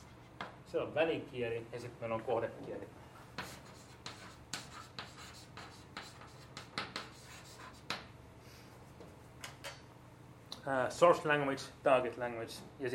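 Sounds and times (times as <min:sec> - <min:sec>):
speech: 0:00.7 - 0:03.1, 0:10.6 - 0:12.9
pen scratching while handwriting text: 0:03.4 - 0:08.0.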